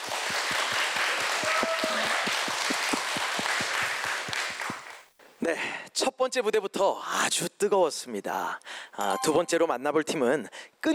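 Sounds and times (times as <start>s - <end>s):
audience applause: 0.0s - 5.0s
speech: 5.5s - 10.9s.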